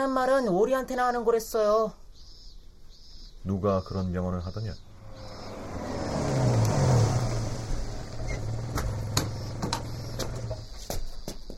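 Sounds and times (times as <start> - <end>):
speech: 0.0 - 2.0, 3.4 - 4.9
small white car pulling in and stopping: 4.8 - 10.9.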